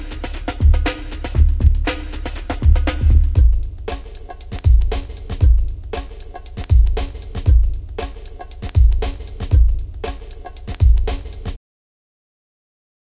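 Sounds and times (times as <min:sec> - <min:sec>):
bass beat: 0:00.0 - 0:04.0, 0:04.6 - 0:08.1, 0:08.7 - 0:10.2.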